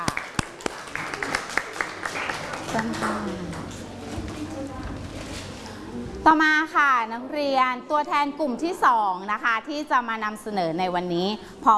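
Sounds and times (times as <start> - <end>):
classroom applause for a student presentation: 0.0 - 3.8
speech: 2.8 - 3.7, 6.3 - 11.7.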